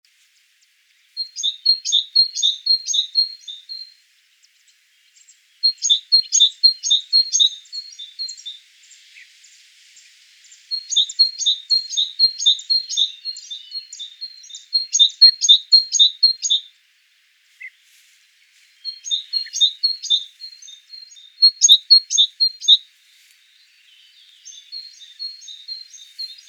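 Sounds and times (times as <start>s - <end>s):
great tit calling: 1.2s - 3.9s, 5.6s - 8.6s, 10.6s - 16.7s, 18.8s - 22.8s, 23.8s - 26.4s.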